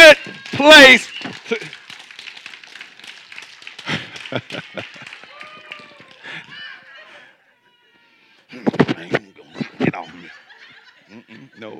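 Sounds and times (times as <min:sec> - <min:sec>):
audience clapping: 0:00.0 - 0:06.7
speech: 0:00.1 - 0:01.8, 0:04.3 - 0:05.0, 0:11.3 - 0:11.7
laughter: 0:03.8 - 0:07.5, 0:08.5 - 0:11.7.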